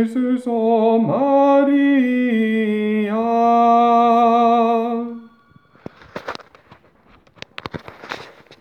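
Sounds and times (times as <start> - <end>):
tenor singing: 0.0 - 6.3.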